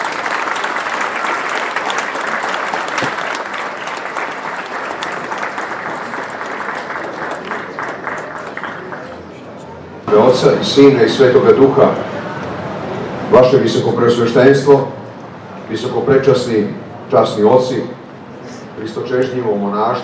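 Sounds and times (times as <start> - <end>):
audience applause welcoming a speaker at an evening gathering: 0.0 - 9.5
speech: 10.1 - 12.2, 13.3 - 15.0, 15.7 - 18.0, 18.9 - 20.0.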